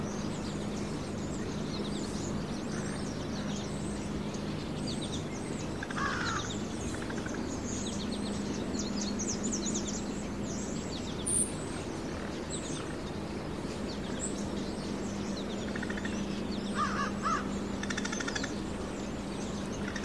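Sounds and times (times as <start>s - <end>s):
various birds in early morning country ambience: 0.0s - 20.0s.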